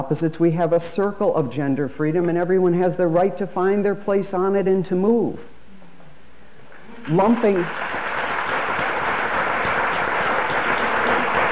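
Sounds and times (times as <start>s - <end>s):
speech: 0.0s - 5.5s, 7.1s - 8.0s
audience clapping: 6.7s - 11.4s.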